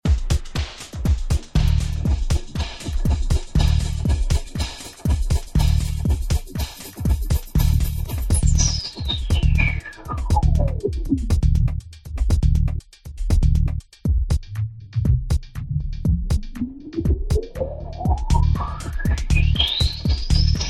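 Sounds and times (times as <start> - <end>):
house music riff: 0.1 - 20.6.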